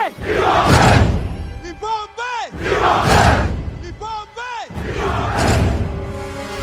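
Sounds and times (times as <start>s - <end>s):
battle cry: 0.2s - 1.2s, 2.5s - 3.6s, 4.7s - 5.9s.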